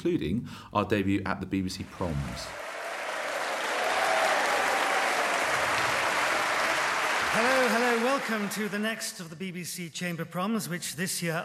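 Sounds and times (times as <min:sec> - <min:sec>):
speech: 0:00.0 - 0:02.7, 0:07.3 - 0:11.4
audience applause at a BBC Chamber Prom concert in Aberystwyth, Ceredigion: 0:02.0 - 0:09.0.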